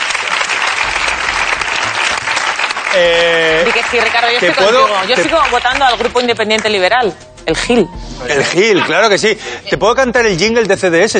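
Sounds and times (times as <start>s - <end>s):
audience applause: 0.0s - 6.3s
speech: 2.9s - 11.1s.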